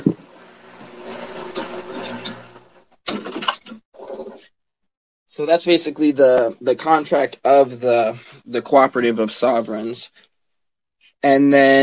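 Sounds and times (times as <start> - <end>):
water pump running: 0.3 - 3.3
speech: 5.4 - 10.3, 11.2 - 11.8.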